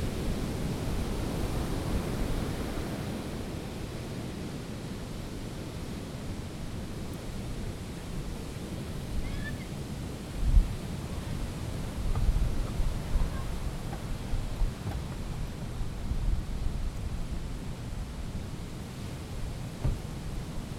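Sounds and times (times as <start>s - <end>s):
sea at Gandoca: 0.0s - 20.7s
car: 19.8s - 20.4s.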